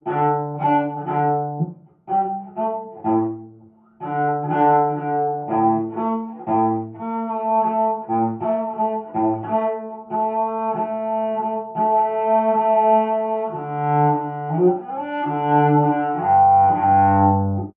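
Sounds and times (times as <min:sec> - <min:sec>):
contrabass: 0:00.0 - 0:17.7.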